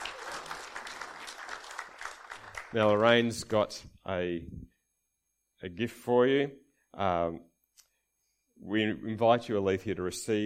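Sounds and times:
audience applause: 0.0s - 3.0s
speech: 2.7s - 4.7s, 5.6s - 7.5s, 8.6s - 10.4s.

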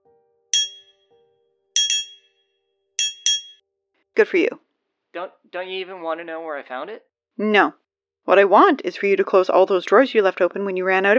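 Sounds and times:
triangle being struck: 0.6s - 0.9s, 1.8s - 2.3s, 3.0s - 3.6s
speech: 4.2s - 11.1s.

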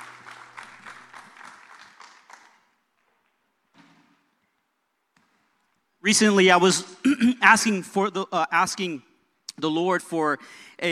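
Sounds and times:
audience clapping: 0.0s - 3.4s
speech: 6.1s - 10.8s.

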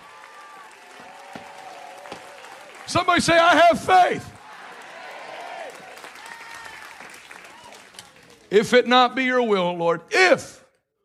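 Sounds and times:
crowd clapping: 0.0s - 8.5s
speech: 2.9s - 4.3s, 8.5s - 10.6s.

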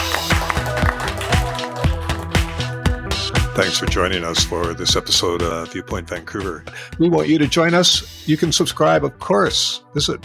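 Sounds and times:
audience applause: 0.0s - 2.7s
speech: 3.6s - 10.2s.

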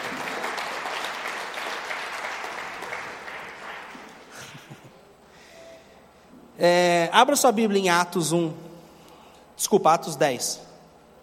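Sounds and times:
audience applause: 0.0s - 4.7s
speech: 6.6s - 8.6s, 9.6s - 10.7s.

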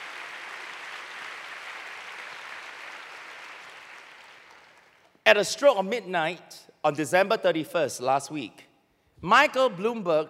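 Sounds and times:
audience clapping: 0.0s - 5.1s
speech: 5.3s - 10.2s.

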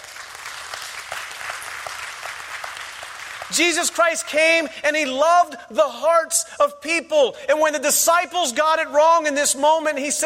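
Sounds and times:
audience clapping: 0.0s - 4.4s
speech: 3.5s - 10.2s.

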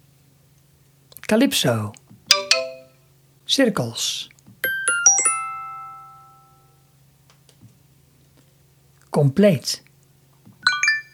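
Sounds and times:
speech: 1.3s - 2.0s, 3.5s - 4.3s, 9.2s - 9.9s
phone notification chime: 2.3s - 3.0s, 4.6s - 6.7s, 10.6s - 11.1s.

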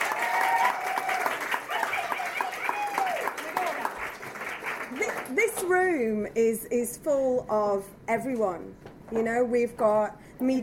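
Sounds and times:
audience applause: 0.0s - 5.6s
speech: 5.7s - 10.6s.

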